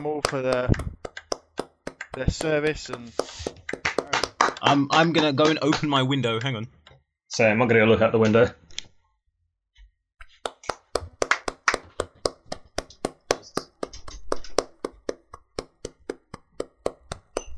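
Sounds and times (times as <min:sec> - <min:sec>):
speech: 0:00.0 - 0:00.9, 0:02.2 - 0:03.6, 0:04.6 - 0:08.6
steady rhythmic hand clapping: 0:00.0 - 0:06.0, 0:10.2 - 0:17.5.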